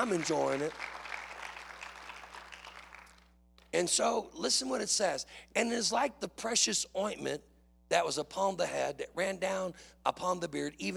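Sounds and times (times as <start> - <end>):
speech: 0.0 - 1.0, 3.7 - 10.9
crowd clapping in praise: 0.0 - 3.4
low electrical hum: 0.0 - 10.9.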